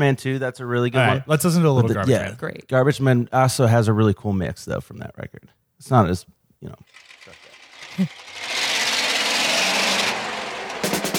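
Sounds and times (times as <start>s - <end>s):
speech: 0.0s - 7.4s, 8.0s - 8.5s
garbage truck engine sample: 7.0s - 11.1s.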